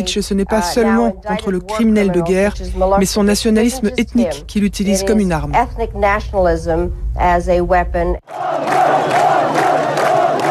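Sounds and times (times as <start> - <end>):
speech: 0.0 - 8.8
crowd chanting a name: 8.2 - 10.5.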